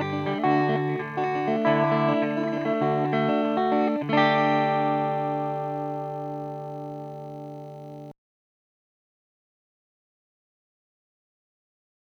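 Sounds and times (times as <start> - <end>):
electric guitar through three-channel valve amplifier with EF86 in triode: 0.0 - 8.1.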